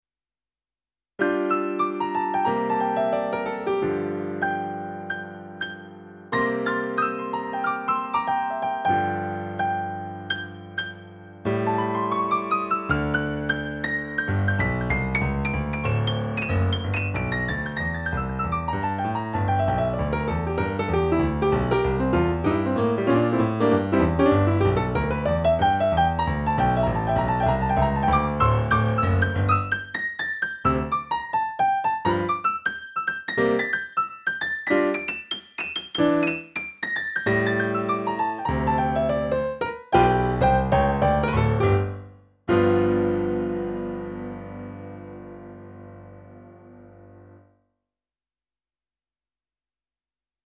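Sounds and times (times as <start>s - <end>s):
piano: 1.2s - 47.6s.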